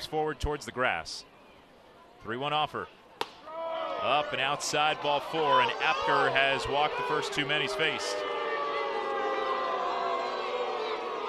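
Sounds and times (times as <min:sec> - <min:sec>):
speech: 0:00.1 - 0:01.3, 0:02.2 - 0:03.0, 0:04.0 - 0:08.3
crowd booing a call: 0:03.4 - 0:11.2.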